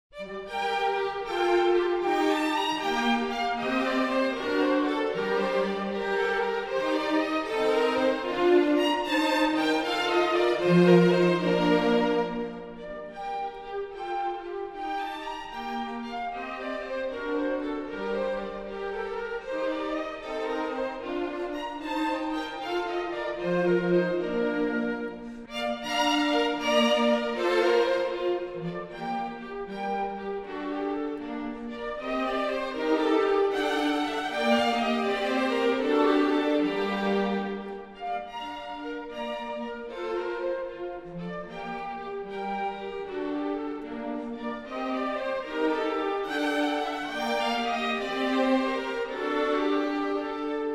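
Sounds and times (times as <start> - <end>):
baroque orchestral country dance in G major: 0.1 - 50.7.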